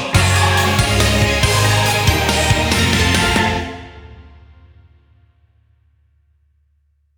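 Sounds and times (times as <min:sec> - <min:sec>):
reward music: 0:00.1 - 0:05.0.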